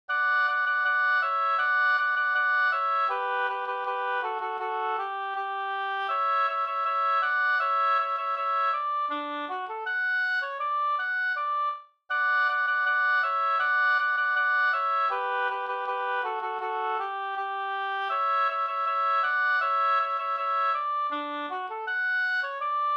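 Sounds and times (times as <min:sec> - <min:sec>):
folk walking tune: 0:00.1 - 0:22.9.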